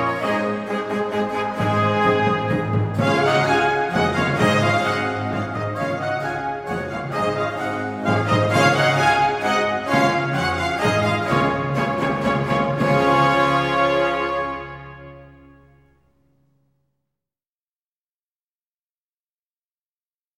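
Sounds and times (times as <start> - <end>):
minuet: 0.0 - 16.0.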